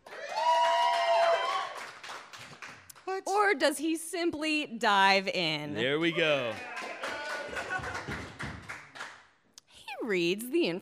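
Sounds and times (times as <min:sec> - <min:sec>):
audience applause as a vote: 0:00.0 - 0:02.8, 0:05.8 - 0:09.2
sustained high whoop: 0:00.1 - 0:01.9
speech: 0:03.2 - 0:06.9, 0:10.1 - 0:10.8.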